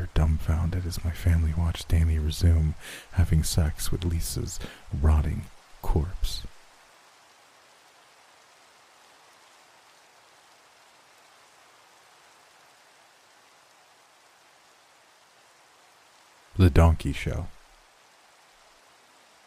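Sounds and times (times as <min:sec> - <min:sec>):
rain: 0:00.0 - 0:19.4
speech: 0:00.5 - 0:06.5, 0:16.6 - 0:17.6.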